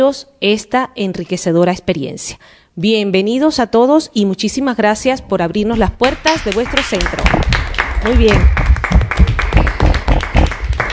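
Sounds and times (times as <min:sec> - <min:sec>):
speech: 0:00.0 - 0:08.6
applause from a school audience welcoming visitors: 0:06.5 - 0:10.9.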